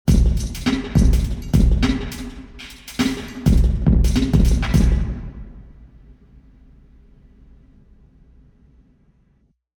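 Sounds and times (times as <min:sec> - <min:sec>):
tennis court drum: 0:00.0 - 0:06.0.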